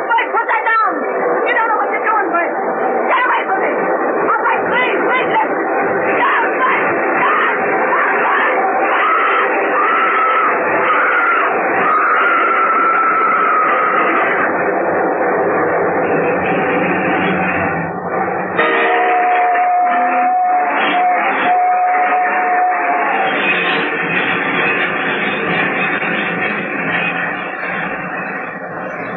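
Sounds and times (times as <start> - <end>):
long loud train roaring past: 0.0 - 29.1
thin steady whistling tone: 6.3 - 29.1.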